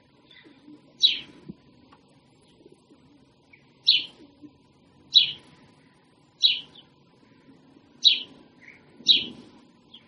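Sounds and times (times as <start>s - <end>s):
other birds singing in a dawn chorus: 0.2s - 1.4s, 3.4s - 4.2s, 5.0s - 10.0s
sparrows chirping in a dawn chorus: 0.2s - 1.4s, 3.4s - 10.0s
pigeons cooing in a dawn chorus: 0.2s - 10.0s.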